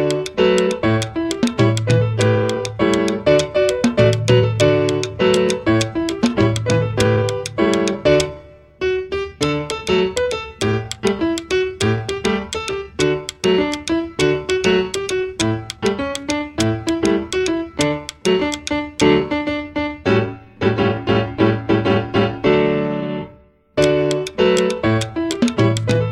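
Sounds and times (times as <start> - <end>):
jazz percussion: 0.0 - 8.3, 9.4 - 19.1, 23.8 - 26.1
jazz piano: 0.0 - 26.1.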